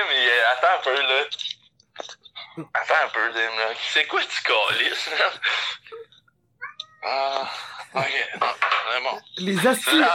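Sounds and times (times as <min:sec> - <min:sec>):
speech: 0:00.0 - 0:05.9, 0:07.0 - 0:10.1
agitated cat meowing: 0:06.6 - 0:07.4.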